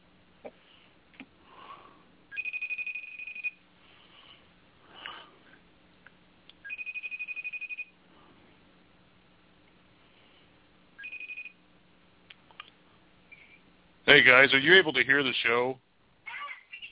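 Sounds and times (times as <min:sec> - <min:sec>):
FaceTime call ringing in high-pitched electronic bursts: 0:02.4 - 0:03.6, 0:06.7 - 0:07.9, 0:11.0 - 0:11.6
speech: 0:14.1 - 0:15.8.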